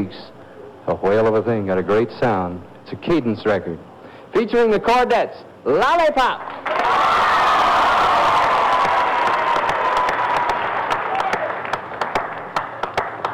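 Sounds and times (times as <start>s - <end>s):
speech: 0.0s - 7.1s
crowd clapping and cheering: 6.4s - 13.3s.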